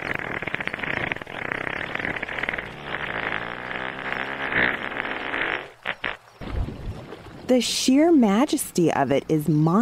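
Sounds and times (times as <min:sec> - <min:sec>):
humpback whale fart: 0:00.0 - 0:06.4
speech: 0:07.5 - 0:09.7.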